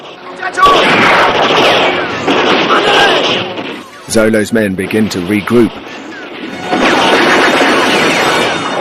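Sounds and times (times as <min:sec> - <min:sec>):
speech: 0:00.4 - 0:00.9, 0:04.1 - 0:06.1
gunshot as a man is shot from a wall: 0:00.6 - 0:04.0, 0:06.4 - 0:08.7.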